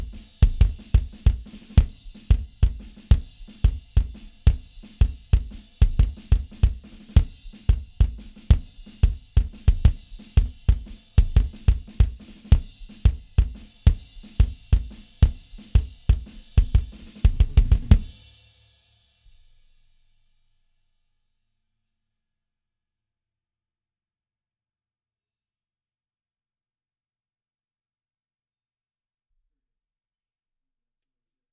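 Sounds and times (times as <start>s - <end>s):
mono drums: 0.0s - 19.9s.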